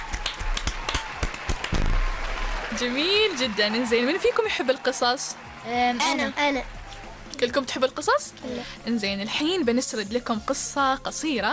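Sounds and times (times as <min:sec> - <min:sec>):
children clapping: 0:00.0 - 0:07.5
speech: 0:02.8 - 0:06.8, 0:07.4 - 0:11.5.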